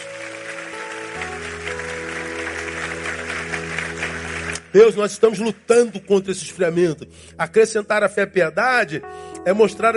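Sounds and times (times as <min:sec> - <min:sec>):
audience applauding: 0:00.0 - 0:05.4
speech: 0:04.7 - 0:09.9.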